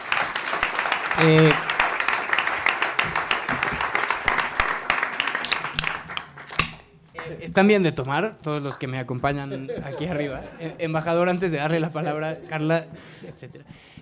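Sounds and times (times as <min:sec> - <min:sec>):
audience applause: 0:00.0 - 0:06.6
speech: 0:01.2 - 0:01.7, 0:07.6 - 0:13.9
laughter: 0:09.3 - 0:13.7.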